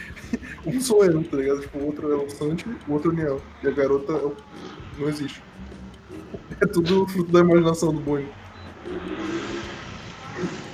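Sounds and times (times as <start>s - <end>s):
laughter: 0.0s - 1.4s
speech: 0.6s - 5.5s, 6.4s - 9.1s
motorcycle passing: 2.8s - 6.6s, 7.9s - 10.7s.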